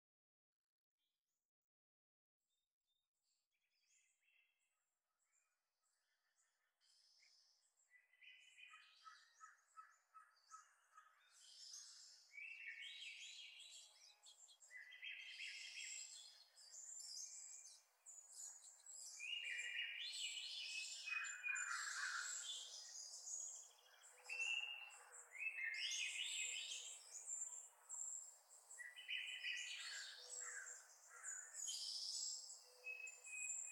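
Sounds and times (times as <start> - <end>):
birds chirping and twittering: 6.8 - 33.6.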